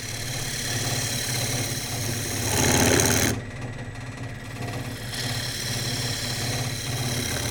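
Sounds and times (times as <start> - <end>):
tool hissing against a spinning wooden bowl on a lathe: 0.0 - 3.4, 4.4 - 7.4
wood lathe motor humming: 0.0 - 7.4.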